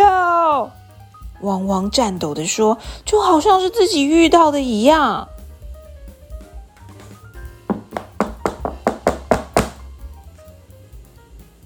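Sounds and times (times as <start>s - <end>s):
speech: 1.4s - 5.3s
knocking: 6.8s - 9.9s.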